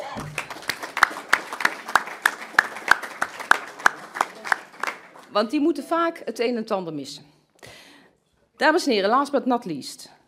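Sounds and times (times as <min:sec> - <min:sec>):
audience clapping in rhythm: 0:00.0 - 0:05.4
speech: 0:05.3 - 0:07.3, 0:08.6 - 0:10.2.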